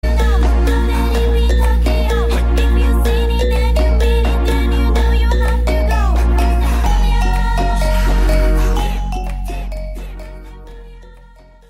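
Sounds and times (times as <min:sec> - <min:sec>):
trap remix: 0:00.0 - 0:11.6.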